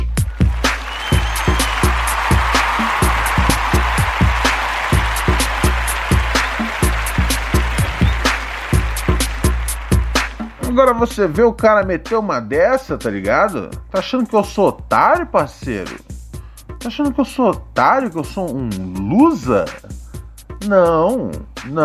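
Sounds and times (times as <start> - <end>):
applause: 0.0 - 11.2
speech: 10.8 - 16.1, 16.8 - 20.0, 20.6 - 21.8.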